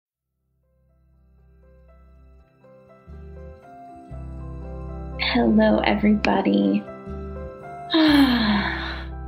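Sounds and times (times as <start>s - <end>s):
speech: 5.4s - 6.9s, 7.9s - 8.4s
deep breath let out as a long sigh: 7.9s - 9.2s.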